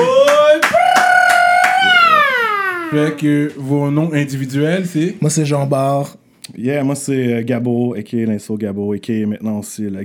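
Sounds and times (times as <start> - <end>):
sharp claps: 0.0 - 2.3
person whooping: 0.0 - 3.2
speech: 2.9 - 10.0.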